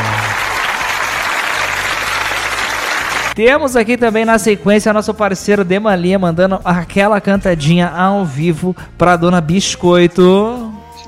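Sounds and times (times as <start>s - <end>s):
applause: 0.0s - 3.4s
speech: 3.4s - 10.8s.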